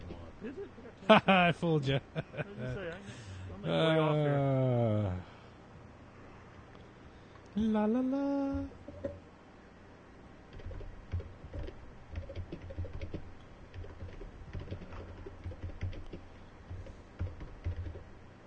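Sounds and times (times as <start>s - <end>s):
speech: 0.4s - 5.3s, 7.6s - 9.2s
laughter: 1.0s - 2.8s
typing on an old computer keyboard: 10.5s - 18.0s.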